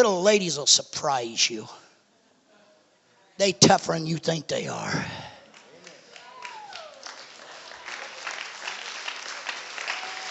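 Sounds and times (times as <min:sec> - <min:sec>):
speech: 0:00.0 - 0:01.8, 0:03.4 - 0:05.3
audience applause: 0:05.5 - 0:10.2.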